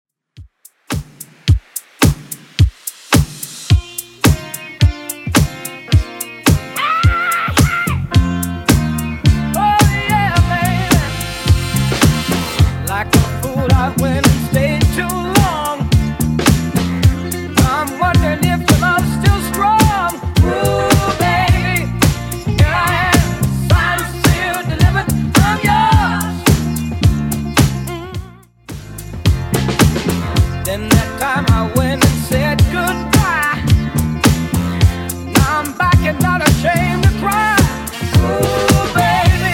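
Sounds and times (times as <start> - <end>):
seventies-style music: 0.4 - 39.5.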